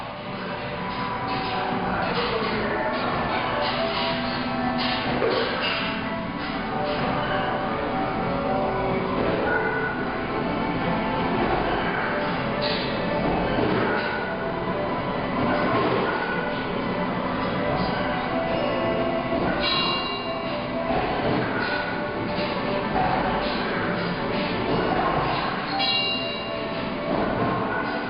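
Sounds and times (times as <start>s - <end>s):
playing with a ball: 0.2s - 28.0s.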